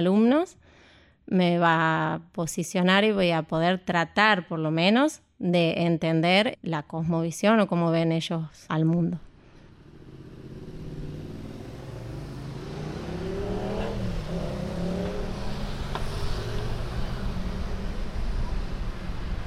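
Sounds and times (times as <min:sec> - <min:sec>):
speech: 0:00.0 - 0:00.6, 0:01.3 - 0:09.3
traffic noise at a tram stop: 0:09.3 - 0:19.4
vehicle engine passing: 0:09.5 - 0:19.4.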